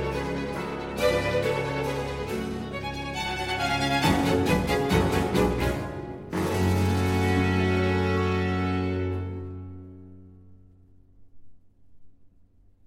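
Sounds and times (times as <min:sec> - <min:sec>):
string concerto in G minor allegro: 0:00.0 - 0:10.0.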